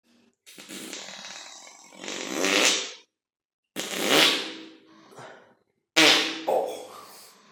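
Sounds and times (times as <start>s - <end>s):
fart: 0.5s - 3.1s, 3.8s - 4.8s, 6.0s - 6.6s.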